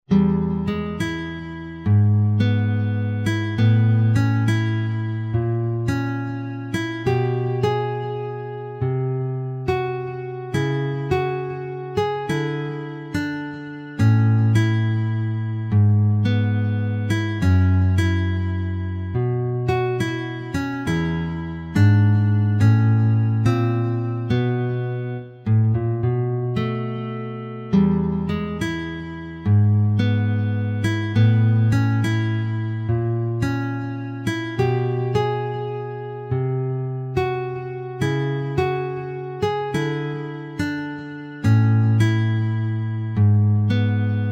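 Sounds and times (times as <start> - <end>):
bluesy music: 0.1 - 44.3.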